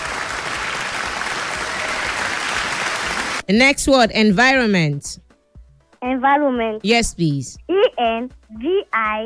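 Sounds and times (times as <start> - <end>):
audience applause: 0.0 - 3.4
speech: 3.5 - 5.2, 6.0 - 9.2.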